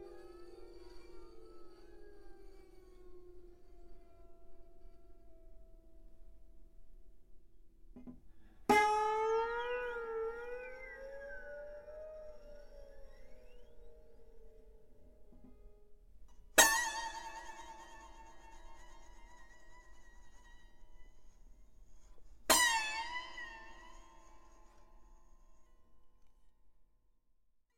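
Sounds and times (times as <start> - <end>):
kannel sliding melody on one string: 0.0 - 5.9, 8.7 - 15.7, 16.6 - 25.7.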